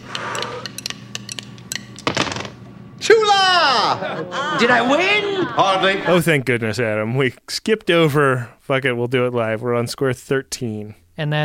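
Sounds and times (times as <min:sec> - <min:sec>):
dice being rolled: 0:02.0 - 0:02.6
laughter: 0:03.7 - 0:06.3
speech: 0:03.9 - 0:11.4.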